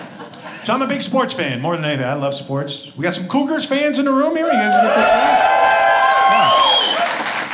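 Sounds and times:
speech: 0:00.6 - 0:06.6
high sliding whoops and shouts: 0:04.4 - 0:07.2
stand-up audience applause for Cougars fans: 0:04.7 - 0:07.5.

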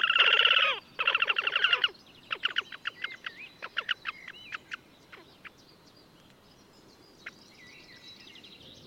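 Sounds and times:
horned grebe calling: 0:00.0 - 0:05.6.

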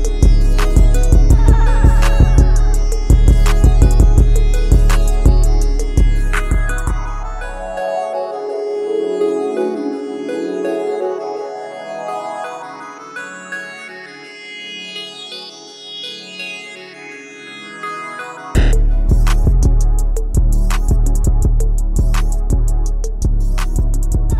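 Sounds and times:
instrumental type beat: 0:00.0 - 0:11.5, 0:18.6 - 0:24.3.

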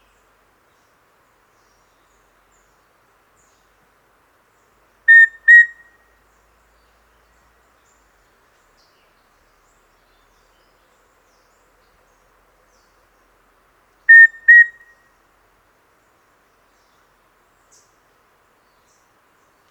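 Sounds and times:
Formicarius rufipectus rufous-breasted antthrush song: 0:05.1 - 0:06.0, 0:14.1 - 0:15.0.

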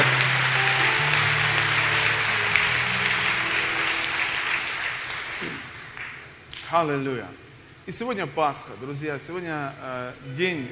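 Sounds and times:
audience applause: 0:00.0 - 0:06.3
speech: 0:06.7 - 0:10.6.

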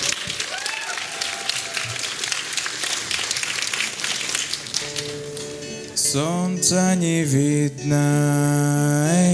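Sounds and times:
audience applause: 0:00.0 - 0:05.7
speech: 0:06.1 - 0:09.2.

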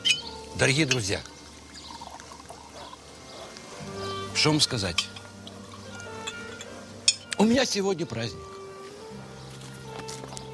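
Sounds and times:
drinks trickling into shot glasses: 0:00.0 - 0:07.3
speech: 0:00.6 - 0:01.3, 0:04.4 - 0:05.2, 0:07.4 - 0:08.5.

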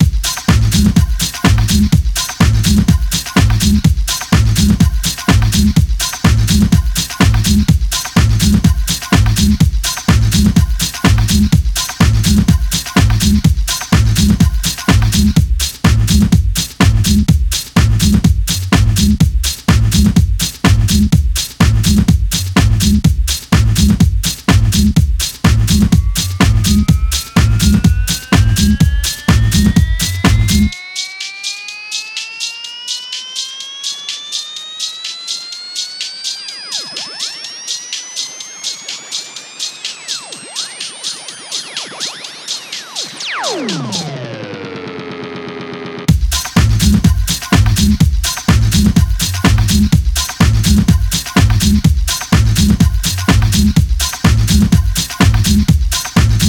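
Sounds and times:
bass beats: 0:00.0 - 0:30.8, 0:46.1 - 0:56.4.

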